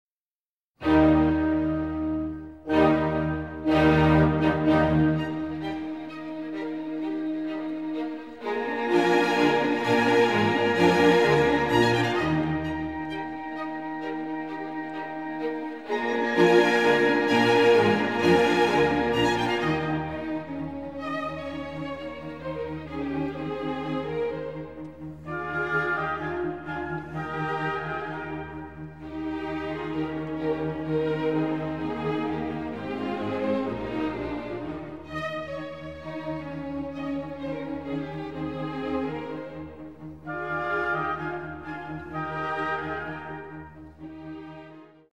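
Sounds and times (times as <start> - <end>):
violin and viola piece in E-flat major Allegro: 0.8 - 45.1.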